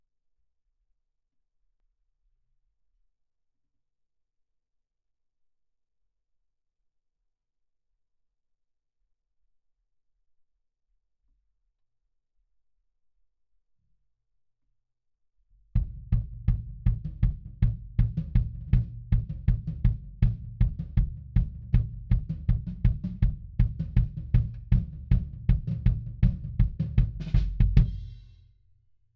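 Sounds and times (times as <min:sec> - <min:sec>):
kick drum: 0:15.8 - 0:28.3.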